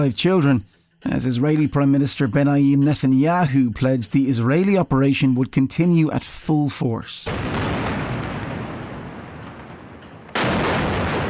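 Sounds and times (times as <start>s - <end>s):
speech: 0.0s - 7.8s
explosion of a 13-storey office building destroyed by precision bombing: 7.3s - 11.2s
heavy blast: 7.3s - 11.2s.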